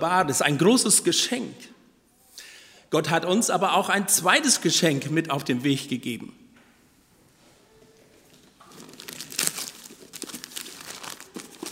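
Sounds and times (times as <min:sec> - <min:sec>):
speech: 0:00.0 - 0:01.8, 0:02.9 - 0:06.4
packaging crinkling as something is unpacked: 0:08.3 - 0:11.7.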